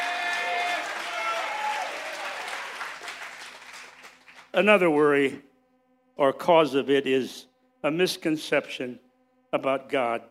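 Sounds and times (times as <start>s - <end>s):
audience shouting and applauding: 0.0s - 4.5s
speech: 4.6s - 5.5s, 6.2s - 10.3s.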